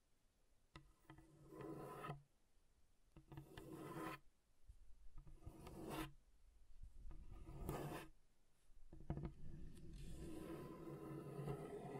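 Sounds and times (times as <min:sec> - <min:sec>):
scratching across a table surface: 0:00.8 - 0:02.2, 0:03.2 - 0:04.2, 0:05.2 - 0:06.2, 0:07.1 - 0:08.2, 0:08.9 - 0:11.9.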